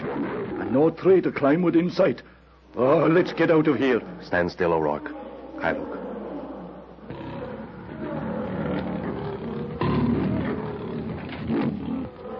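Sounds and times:
lion roaring: 0.0s - 0.8s, 5.1s - 12.3s
speech: 0.2s - 6.0s.

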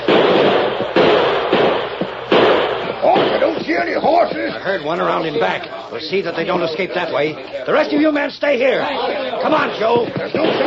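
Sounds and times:
gunfire volley: 0.0s - 4.3s, 9.6s - 10.6s
speech: 4.6s - 10.6s.

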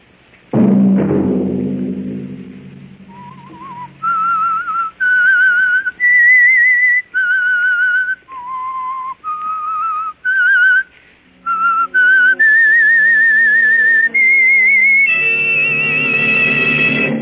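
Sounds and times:
sustained lower instrumental tones: 0.0s - 5.8s, 11.2s - 17.1s
low thump: 0.5s - 4.5s
lone whistler whistling an eerie mystery series theme: 3.1s - 17.1s.

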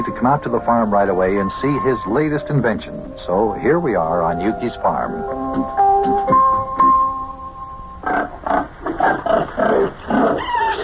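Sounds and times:
speech: 0.0s - 6.6s
pigs squealing in a pen: 8.0s - 10.8s.

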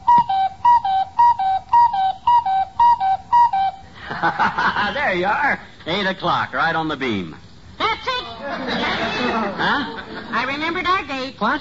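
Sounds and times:
cuckoo clock calling: 0.0s - 3.9s
laughter: 4.0s - 5.2s, 8.3s - 10.6s
speech: 4.2s - 7.4s, 8.7s - 11.5s.

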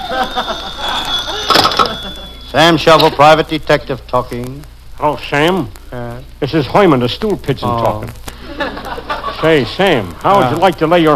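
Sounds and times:
laughter: 0.0s - 2.4s, 8.3s - 10.6s
telephone bell ringing: 0.0s - 3.2s
warbling sweeping tones: 0.0s - 3.5s
thin steady high-pitched whine: 0.0s - 8.2s, 9.4s - 11.1s
speech: 0.1s - 0.8s, 2.5s - 8.8s, 9.4s - 11.1s.

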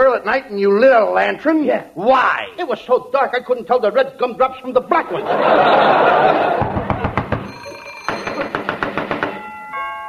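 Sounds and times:
speech: 0.2s - 6.8s
laughter: 4.9s - 7.4s
quick sharp knocking on a door: 6.6s - 7.5s, 8.1s - 9.5s
brief ringing tone: 7.4s - 8.6s.

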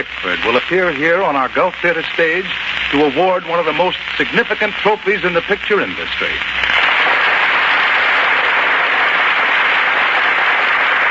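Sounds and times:
speech: 0.0s - 6.6s
audience applause at the Gulf Theater: 6.7s - 11.1s.

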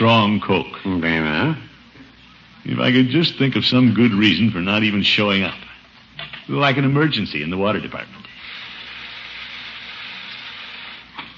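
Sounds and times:
speech: 0.0s - 1.7s, 2.6s - 8.2s
carbonated water fizzing from soda fountain: 8.4s - 11.2s.

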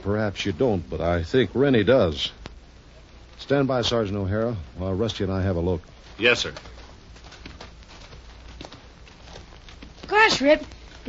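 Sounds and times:
speech: 0.0s - 2.4s, 3.4s - 6.8s, 10.4s - 11.0s
horse hooves clip-clopping as a horse is led away from a wagon: 5.2s - 11.0s.

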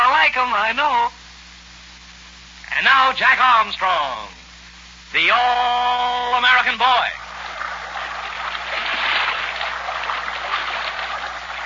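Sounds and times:
speech: 0.4s - 1.2s, 2.8s - 4.4s, 5.1s - 7.2s
river water rushing: 7.3s - 11.6s.

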